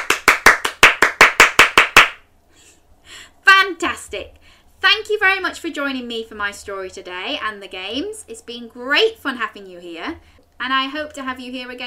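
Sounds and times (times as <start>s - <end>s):
hands clapping: 0.0s - 2.2s
speech: 4.1s - 11.8s.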